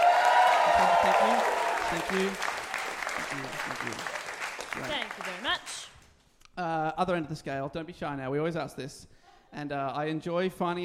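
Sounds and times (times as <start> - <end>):
audience applause: 0.0 - 5.8
speech: 0.8 - 2.6, 3.2 - 4.2, 4.8 - 5.9, 6.6 - 10.8.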